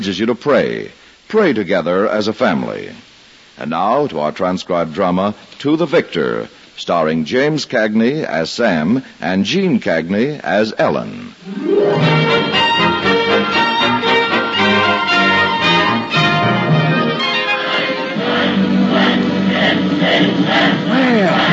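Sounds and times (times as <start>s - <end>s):
speech: 0.0s - 12.5s
crowd cheering a welcome in a radio drama: 11.4s - 21.5s.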